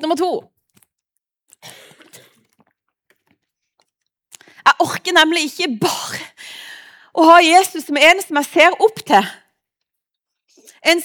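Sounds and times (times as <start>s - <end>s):
speech: 0.0s - 0.5s, 4.7s - 6.6s, 7.2s - 9.4s, 10.8s - 11.0s
speaker drinking a sip of water: 1.5s - 4.4s.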